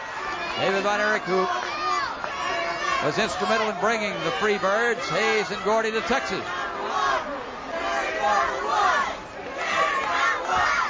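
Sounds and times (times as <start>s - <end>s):
arena crowd chanting: 0.0s - 10.8s
speech: 0.8s - 1.7s, 3.0s - 7.0s, 8.2s - 9.0s.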